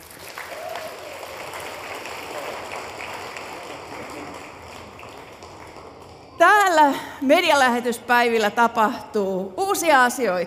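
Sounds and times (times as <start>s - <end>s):
audience applause at a Christian media mission event: 0.0s - 7.0s
speech: 6.4s - 10.4s.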